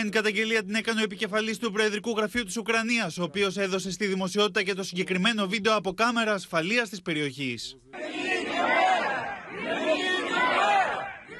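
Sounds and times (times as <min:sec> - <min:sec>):
speech: 0:00.0 - 0:08.8
dense murmur of many voices: 0:07.9 - 0:11.3
protest crowd shouting a name in unison: 0:07.9 - 0:11.3.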